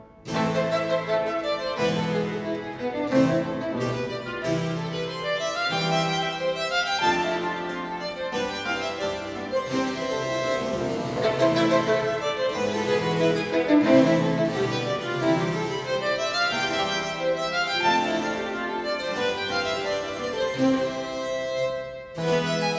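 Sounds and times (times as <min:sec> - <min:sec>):
violin and continuo sonata in A minor: 0:00.0 - 0:22.7.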